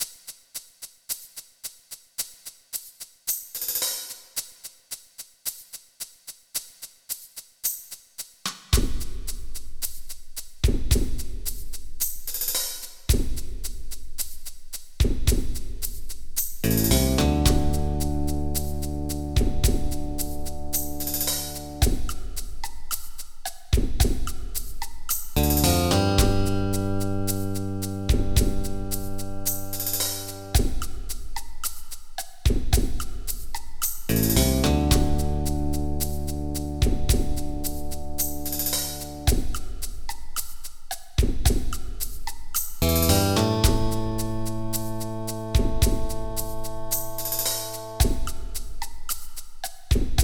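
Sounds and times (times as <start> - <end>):
rhythm: 6.6 - 50.2.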